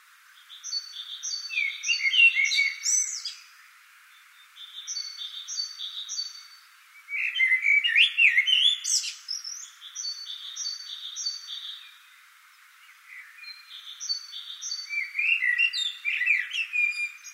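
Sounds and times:
common blackbird Turdus merula song: 0.2s - 17.3s.

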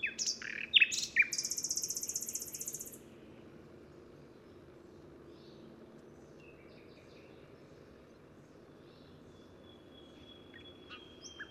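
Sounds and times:
common nightingale song: 0.0s - 3.0s, 8.8s - 11.4s.

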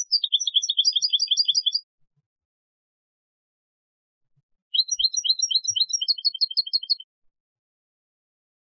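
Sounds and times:
European goldfinch Carduelis carduelis twittering: 0.0s - 1.8s, 4.8s - 7.0s.

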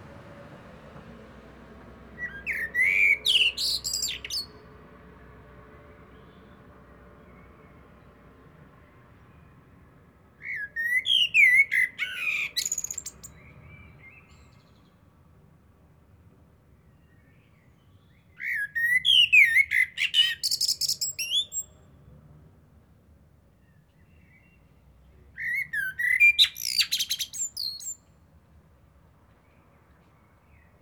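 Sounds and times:
Eurasian blackbird song of whistles and twitters: 2.2s - 4.7s, 10.4s - 15.0s, 16.8s - 21.9s, 23.5s - 28.2s.

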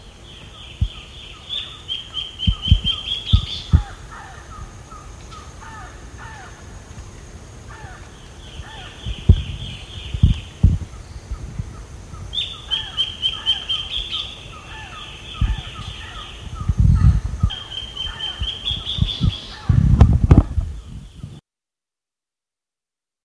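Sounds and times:
bird chirping: 0.0s - 5.6s, 7.8s - 19.9s
low rumbling noise: 0.0s - 21.3s
dull low thumps: 2.4s - 3.9s, 9.0s - 12.4s, 15.4s - 17.7s, 18.3s - 21.4s.

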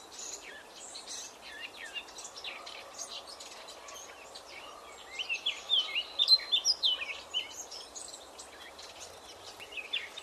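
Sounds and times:
Eurasian blackcap warbling song: 0.0s - 10.2s.

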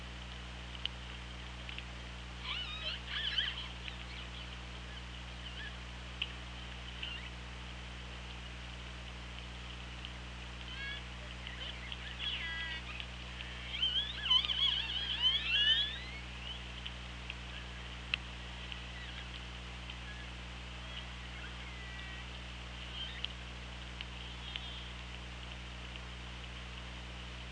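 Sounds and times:
low steady hum: 0.0s - 27.5s
water noise: 0.0s - 27.5s
faint clicks: 0.2s - 27.5s
orca calls: 2.4s - 5.8s, 10.7s - 16.7s, 18.8s - 19.4s, 20.0s - 22.3s, 22.9s - 23.3s.

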